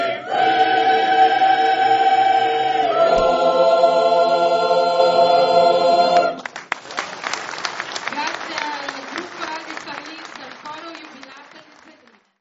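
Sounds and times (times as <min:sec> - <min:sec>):
choir singing: 0:00.0 - 0:06.5.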